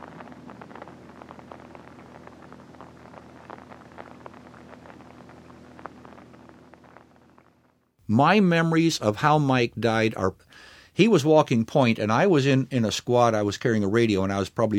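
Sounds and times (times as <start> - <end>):
rain at night: 0.0 - 7.8
speech: 8.1 - 14.7.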